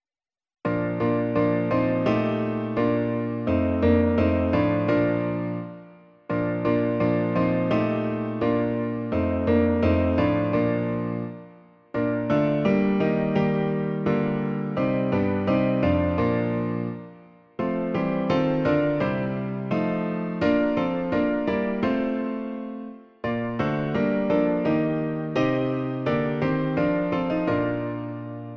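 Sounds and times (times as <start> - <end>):
piano: 0.6 - 28.5.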